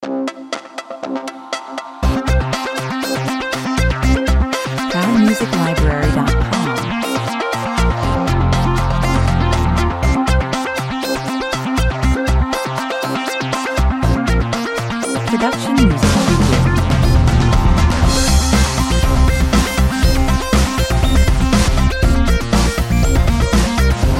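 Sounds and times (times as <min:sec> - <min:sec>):
aggressive 120 bpm music: 0:00.0 - 0:24.1.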